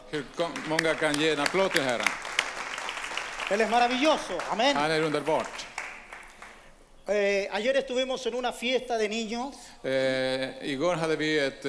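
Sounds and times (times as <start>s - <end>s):
audience applauding: 0.0s - 6.8s
speech: 0.1s - 2.3s, 3.5s - 5.7s, 7.1s - 11.6s.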